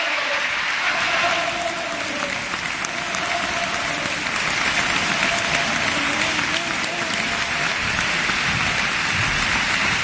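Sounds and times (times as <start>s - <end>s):
thunderous applause in the Gran Teatro Falla: 0.0s - 10.0s.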